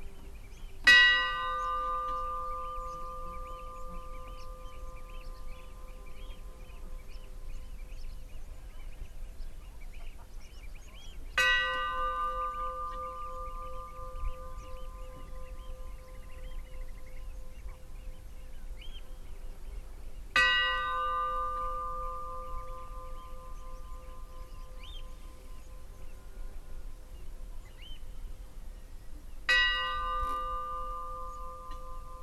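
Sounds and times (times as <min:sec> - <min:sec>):
Stadarfellskirkja funeral bell ringing: 0:00.8 - 0:07.1, 0:11.4 - 0:18.0, 0:20.4 - 0:25.9, 0:29.5 - 0:32.2.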